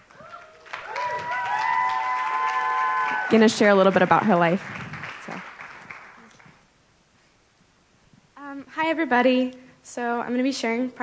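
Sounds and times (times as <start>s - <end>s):
audience applause welcoming a speaker at a faith gathering: 0.0s - 6.6s
speech: 3.3s - 4.8s, 9.0s - 11.0s.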